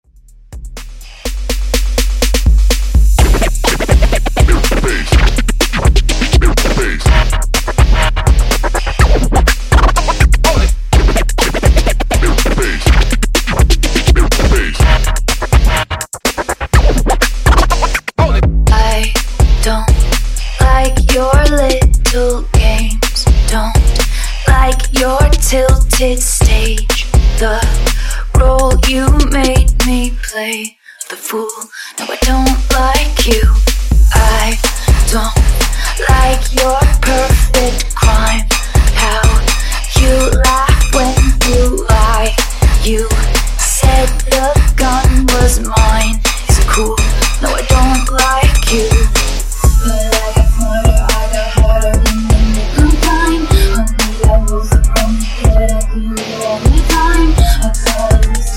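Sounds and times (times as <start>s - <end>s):
124 BPM funk mashup: 0.8s - 30.1s, 32.0s - 58.5s.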